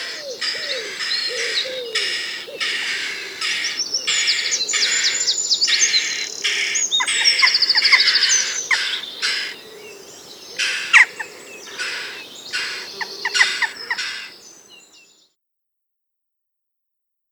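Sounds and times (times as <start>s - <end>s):
jackdaw birdsong: 0.0s - 9.8s, 10.6s - 14.6s.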